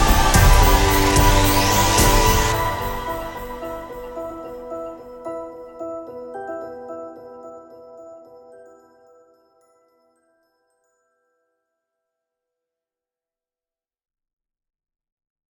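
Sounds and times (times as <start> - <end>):
dark bells: 0.0 - 11.2.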